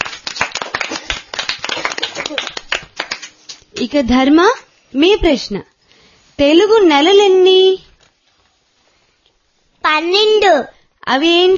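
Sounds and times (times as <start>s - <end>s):
audience clapping: 0.0s - 3.9s
speech: 3.8s - 5.7s, 6.4s - 7.8s, 9.9s - 11.5s.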